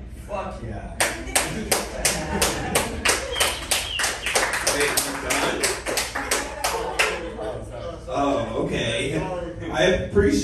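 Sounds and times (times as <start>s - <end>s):
speech: 0.3s - 2.9s, 9.8s - 10.4s
audience applause: 1.0s - 7.4s
laughter: 1.0s - 9.6s.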